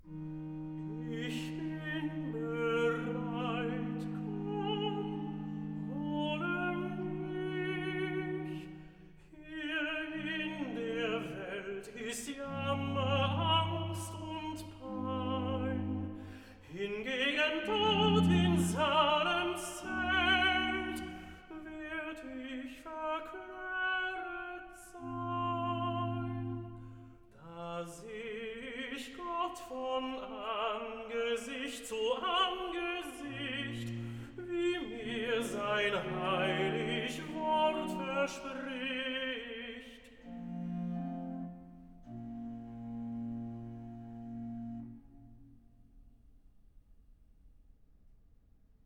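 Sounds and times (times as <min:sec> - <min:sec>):
tenor singing recitative: 0:00.0 - 0:44.7.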